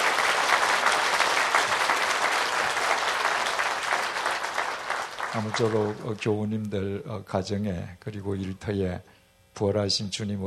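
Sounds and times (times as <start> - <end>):
audience applause: 0.0 - 6.1
speech: 5.4 - 10.4.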